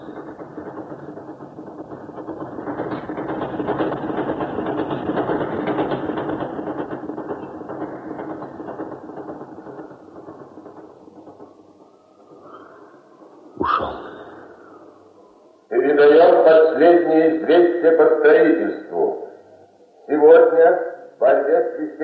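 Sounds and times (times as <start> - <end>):
passing train: 0.0 - 22.0.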